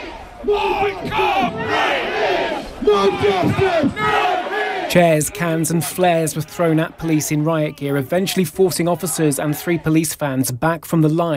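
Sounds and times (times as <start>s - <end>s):
protest crowd shouting outside police station: 0.0s - 10.1s
speech: 0.4s - 2.1s, 2.8s - 4.3s, 4.9s - 11.3s.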